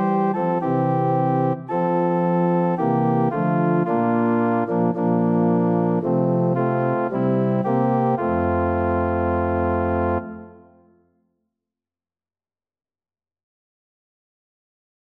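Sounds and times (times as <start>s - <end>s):
organ: 0.0s - 10.7s.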